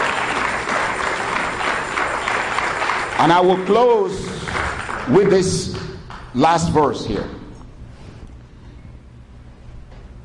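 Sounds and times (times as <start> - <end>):
audience clapping hands: 0.0 - 7.4
speech: 3.2 - 7.4.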